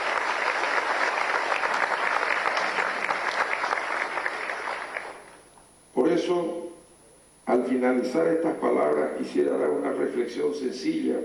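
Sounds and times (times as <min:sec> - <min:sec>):
audience applause: 0:00.0 - 0:05.4
speech: 0:06.3 - 0:06.6, 0:07.6 - 0:11.2.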